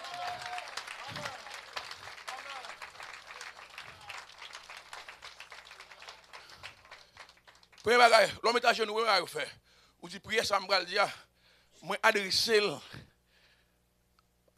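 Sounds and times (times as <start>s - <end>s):
audience applause: 0.0s - 8.2s
speech: 7.8s - 11.2s, 11.8s - 13.0s.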